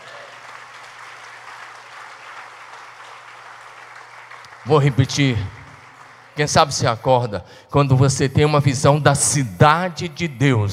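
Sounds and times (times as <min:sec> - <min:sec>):
audience applause: 0:00.0 - 0:07.3
speech: 0:04.6 - 0:05.6, 0:06.4 - 0:10.7.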